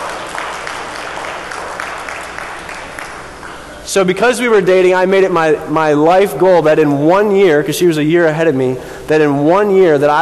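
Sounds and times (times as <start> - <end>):
audience applause: 0.0 - 3.6
speech: 3.9 - 10.1.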